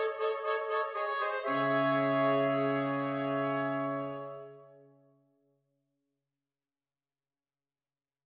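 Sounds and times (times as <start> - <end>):
MIDI saxophone quartet music: 0.0 - 5.0.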